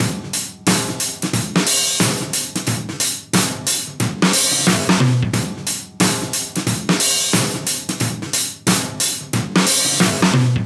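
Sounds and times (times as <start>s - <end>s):
live funk drums: 0.0s - 10.6s.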